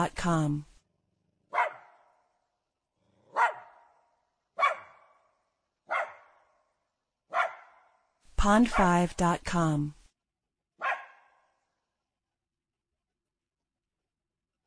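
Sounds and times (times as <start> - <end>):
speech: 0.0 - 0.7, 8.4 - 10.0
Jack Russell terrier barking with echo: 1.5 - 2.2, 3.3 - 4.0, 4.6 - 5.2, 5.9 - 6.6, 7.3 - 8.0, 10.8 - 11.5.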